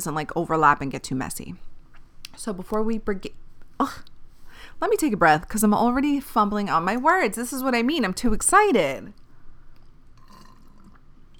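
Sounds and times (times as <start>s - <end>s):
speech: 0.0s - 1.7s, 2.4s - 9.2s
slurping iced coffee: 10.2s - 11.1s.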